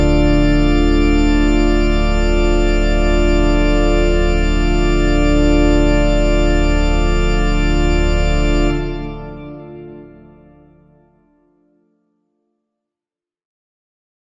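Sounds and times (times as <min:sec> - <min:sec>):
pipe organ playing plein jeu registration: 0:00.0 - 0:11.2.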